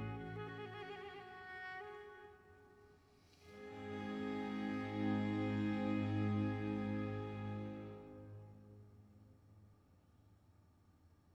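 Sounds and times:
concerto grosso in F major: 0:00.0 - 0:02.0, 0:03.6 - 0:08.6.

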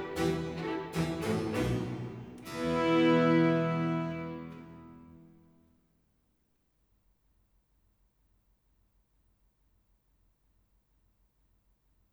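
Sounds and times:
string orchestra playing a concerto allegro in E minor: 0:00.0 - 0:05.3.

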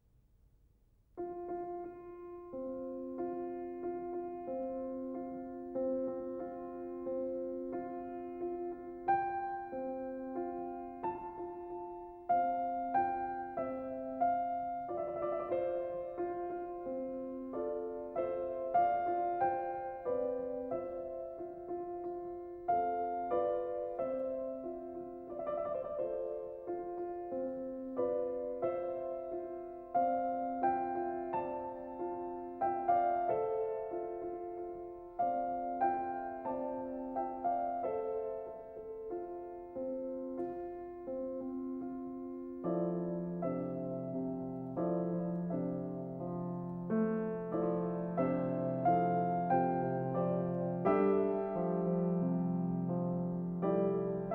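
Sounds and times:
piano nocturne: 0:01.0 - 0:54.3.

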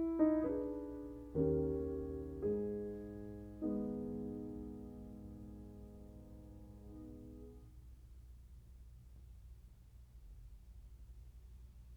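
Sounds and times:
piano mazurka in G sharp minor: 0:00.0 - 0:07.7.

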